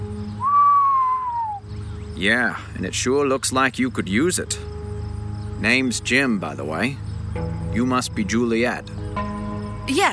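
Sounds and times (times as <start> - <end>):
long whistle: 0.3 - 1.7
speech: 2.2 - 4.8, 5.6 - 9.3, 9.9 - 10.1.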